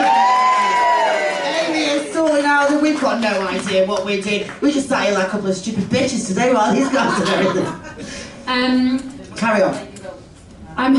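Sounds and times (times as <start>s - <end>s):
crowd cheering and whooping: 0.0s - 2.1s
crowd clapping: 0.0s - 4.8s
speech: 2.9s - 10.2s, 10.8s - 10.9s
laughter: 6.5s - 8.2s.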